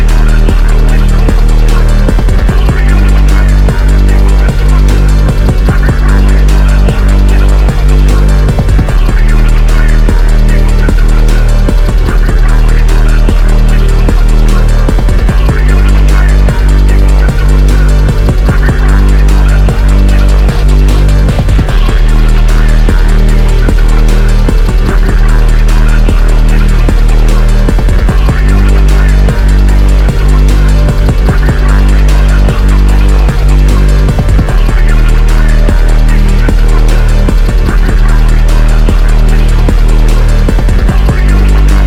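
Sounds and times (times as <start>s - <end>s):
melodic phonk music: 0.0s - 41.8s.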